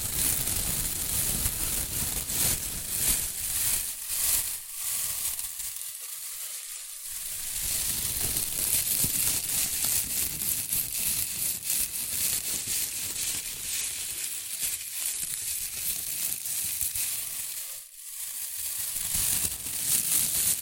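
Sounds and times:
shredded tissue and packing peanuts rustling and crinkling: 0.0 - 20.6.

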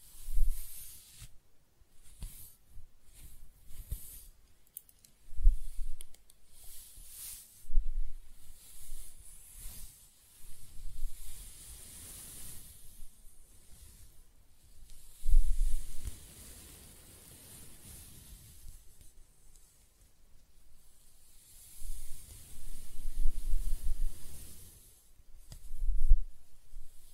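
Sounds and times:
hair being scratched, brushed and stroked: 0.0 - 20.1, 20.8 - 27.1.

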